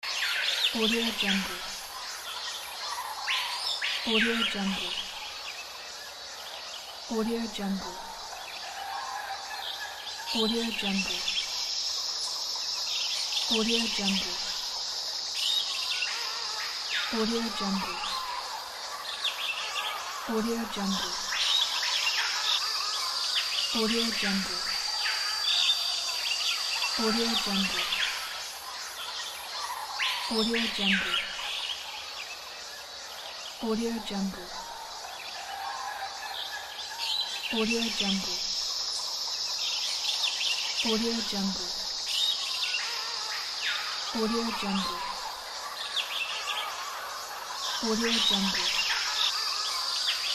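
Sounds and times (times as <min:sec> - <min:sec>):
jungle ambience: 0:00.0 - 0:50.3.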